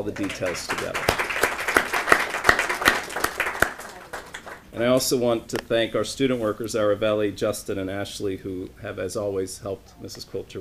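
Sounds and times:
speech: 0:00.0 - 0:01.4, 0:04.8 - 0:10.5
audience applause: 0:00.0 - 0:04.7.

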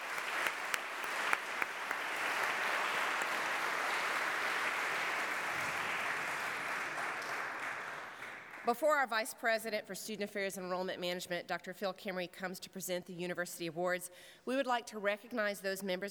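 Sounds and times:
crowd applause: 0:00.0 - 0:08.7
speech: 0:08.7 - 0:16.1.

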